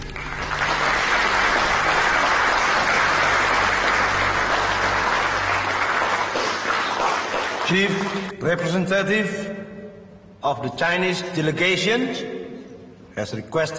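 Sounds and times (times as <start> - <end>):
applause in a conference hall: 0.0 - 8.4
speech: 7.7 - 9.6, 10.4 - 12.4, 13.2 - 13.7.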